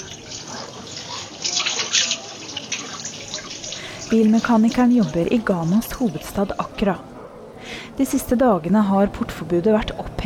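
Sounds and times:
running tap water as a car mechanic in Accra, Ghana washes motor oil off his hands: 0.0 - 6.8
speech: 4.1 - 7.1, 8.0 - 10.2.

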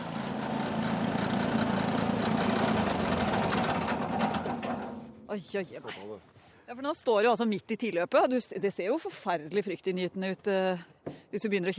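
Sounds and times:
ski-jump track cutting machine engine: 0.0 - 5.2
speech: 5.3 - 11.7.

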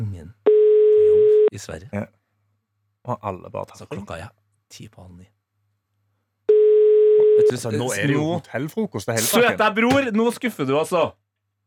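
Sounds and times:
telephone ringing tone: 0.5 - 1.5, 6.5 - 7.6
speech: 1.6 - 2.2, 3.0 - 5.4, 7.4 - 11.2.

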